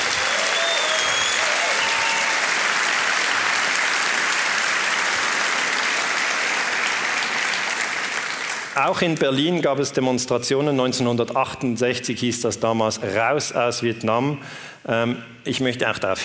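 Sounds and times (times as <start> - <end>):
audience applause: 0.0 - 9.2
speech: 8.8 - 16.2.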